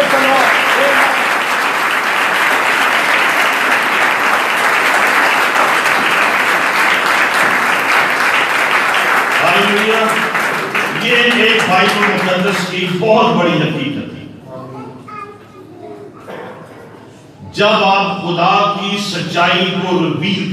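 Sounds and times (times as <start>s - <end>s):
loud applause: 0.0s - 13.0s
speech: 12.8s - 13.9s, 17.6s - 20.5s.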